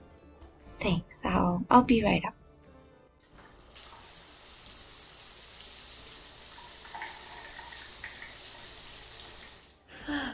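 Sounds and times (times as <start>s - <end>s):
speech: 0.8s - 2.4s
shower water running: 3.2s - 9.9s.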